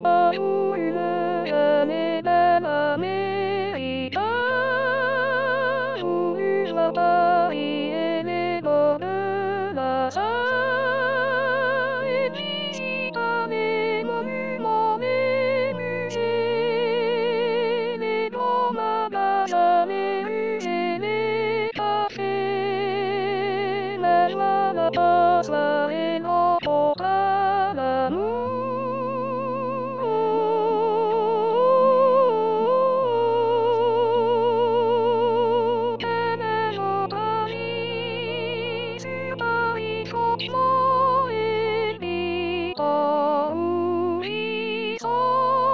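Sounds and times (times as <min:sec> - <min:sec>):
soprano singing: 0:00.0 - 0:45.7.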